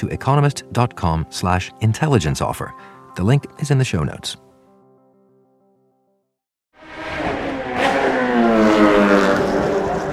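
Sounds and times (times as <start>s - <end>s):
speech: 0.0s - 4.4s
Formula One race car accelerating hard: 6.8s - 10.1s.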